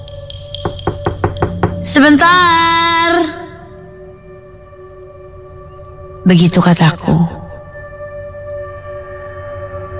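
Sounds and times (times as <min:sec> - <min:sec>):
knocking on an apartment door: 0:00.5 - 0:02.0
speech: 0:01.9 - 0:02.6, 0:06.3 - 0:07.4.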